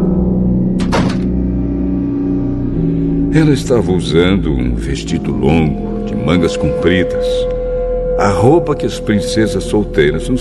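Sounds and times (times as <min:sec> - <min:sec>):
low humming drone: 0:00.0 - 0:10.4
door shutting: 0:00.8 - 0:01.4
speech: 0:03.4 - 0:07.6, 0:08.2 - 0:10.4.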